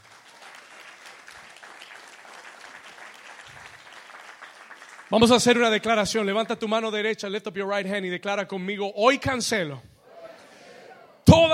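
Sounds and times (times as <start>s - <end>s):
audience applauding: 0.0s - 5.8s
speech: 5.1s - 9.9s, 11.4s - 11.5s.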